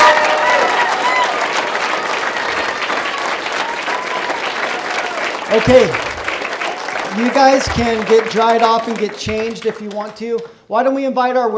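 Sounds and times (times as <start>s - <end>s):
faint whistles and cheers: 0.0s - 5.7s
crowd clapping: 0.0s - 10.6s
speech: 5.5s - 6.1s, 7.2s - 11.5s.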